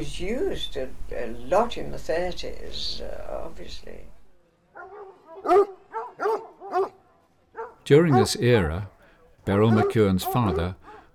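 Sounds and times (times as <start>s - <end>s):
speech: 0.0s - 4.2s, 5.4s - 5.8s, 7.9s - 8.9s, 9.5s - 10.8s
hounds barking: 4.7s - 11.1s.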